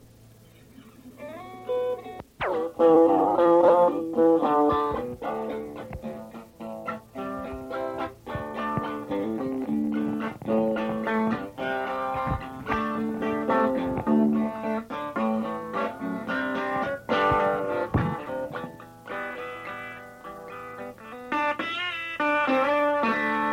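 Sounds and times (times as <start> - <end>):
instrumental music: 0.4 - 23.5.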